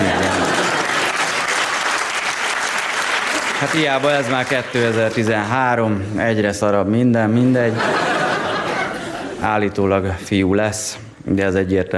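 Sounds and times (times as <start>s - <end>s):
laughter: 0.0s - 1.4s, 7.5s - 9.6s
audience applause: 0.0s - 5.4s
speech: 3.6s - 8.2s, 9.4s - 11.9s.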